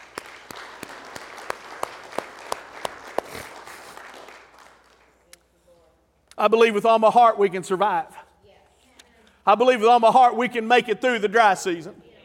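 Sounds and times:
applause: 0.0 - 5.2
audience clapping in rhythm: 0.0 - 5.3
speech: 6.4 - 8.1, 9.5 - 12.0.

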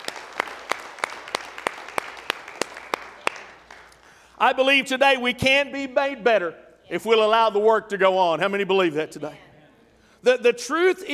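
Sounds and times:
audience clapping: 0.0 - 4.4
speech: 4.4 - 9.4, 10.2 - 11.1.

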